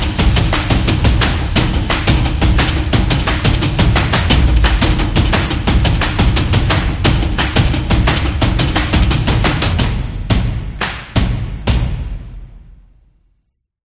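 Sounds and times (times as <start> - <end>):
trailer drums: 0.0 - 12.9.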